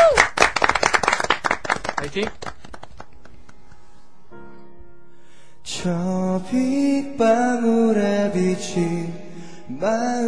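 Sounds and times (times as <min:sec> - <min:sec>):
applause, hands clapping: 0:00.0 - 0:03.8
speech: 0:02.0 - 0:02.5, 0:05.8 - 0:09.1, 0:09.7 - 0:10.2.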